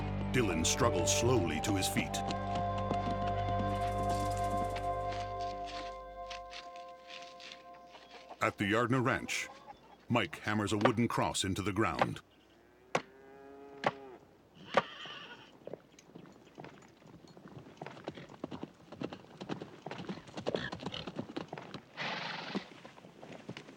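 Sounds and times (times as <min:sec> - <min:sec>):
horse galloping up at a ranch: 0:00.0 - 0:11.1, 0:13.8 - 0:23.7
speech: 0:00.4 - 0:02.6, 0:08.4 - 0:12.3
horse whinny: 0:12.4 - 0:15.6, 0:22.0 - 0:22.8.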